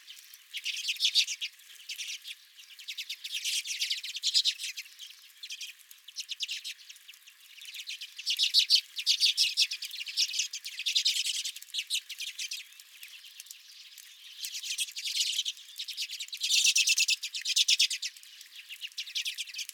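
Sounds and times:
redpoll flock twittering: 0.1s - 19.7s.

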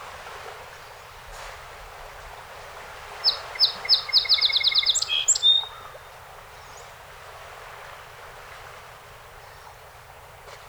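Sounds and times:
song sparrow song: 3.1s - 6.0s.

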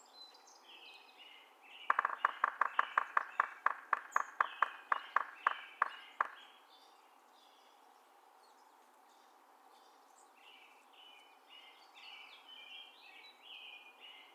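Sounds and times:
Yellow-bellied Sapsucker drumming: 1.8s - 6.6s.

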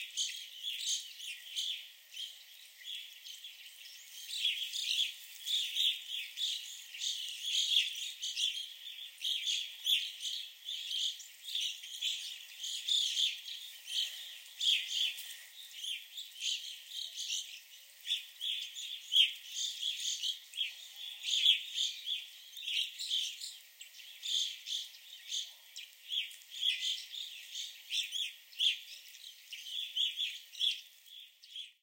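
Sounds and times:
Evening Grosbeaks calling at the Sax-Zim Bog Visitor Center: 0.0s - 31.8s.

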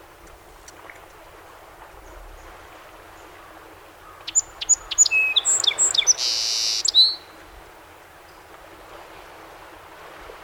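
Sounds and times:
song sparrow singing: 4.0s - 7.4s.

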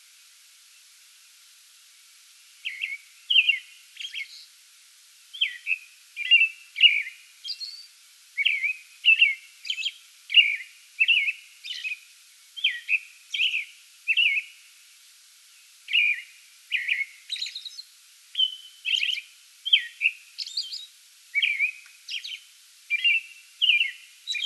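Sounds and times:
American robin singing: 2.6s - 4.5s, 5.3s - 12.0s, 12.6s - 14.6s, 15.9s - 24.4s.

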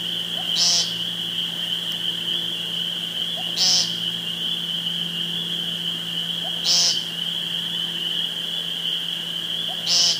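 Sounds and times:
steady shrill hum: 0.0s - 10.1s
woodcock calls of low croaks and high squeak: 6.6s - 7.0s, 9.7s - 10.1s.

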